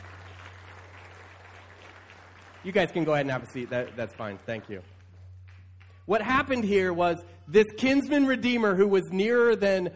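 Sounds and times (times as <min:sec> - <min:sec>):
audience applause: 0:00.0 - 0:05.7
speech: 0:02.6 - 0:04.9, 0:06.1 - 0:09.9.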